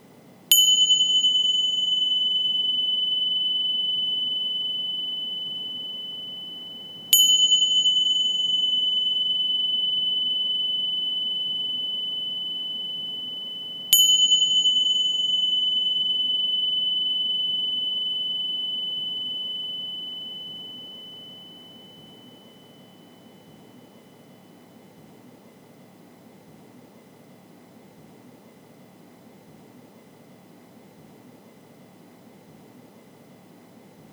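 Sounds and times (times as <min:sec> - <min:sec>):
meditation bell ringing: 0:00.5 - 0:24.8.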